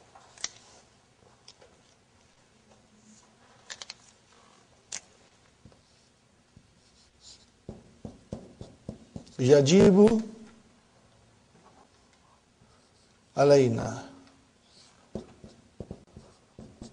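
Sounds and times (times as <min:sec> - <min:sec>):
pen or marker strokes as a teacher writes: 0:07.7 - 0:09.4, 0:15.1 - 0:16.9
speech: 0:09.4 - 0:10.3, 0:13.4 - 0:14.0.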